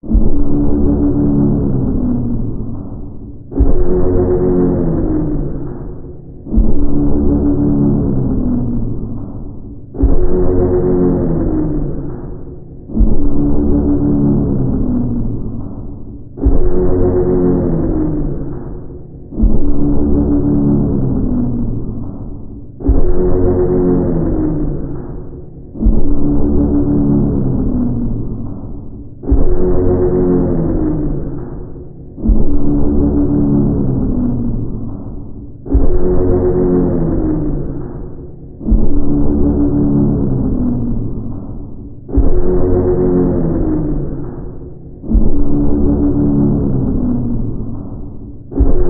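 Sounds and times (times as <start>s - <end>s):
scary music: 0.0s - 48.8s.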